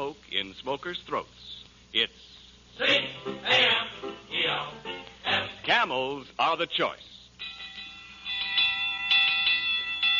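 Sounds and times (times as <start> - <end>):
speech: 0.0 - 7.2
faint steady hum: 0.0 - 10.1
firehouse alarm bell ringing: 7.4 - 10.1.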